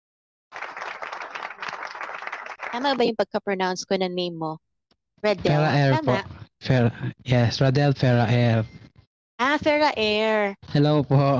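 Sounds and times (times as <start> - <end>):
audience applause welcoming a guest: 0.5 - 3.1
speech: 2.7 - 4.6, 5.2 - 11.3.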